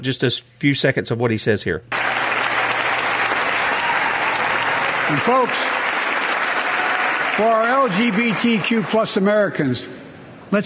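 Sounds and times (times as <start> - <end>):
speech: 0.0 - 2.6, 5.1 - 5.7, 7.4 - 10.6
audience clapping: 1.9 - 9.6.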